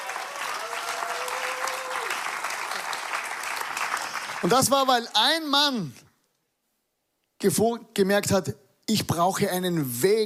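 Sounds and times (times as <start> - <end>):
audience clapping: 0.0 - 5.2
speech: 4.4 - 6.0, 7.4 - 10.2.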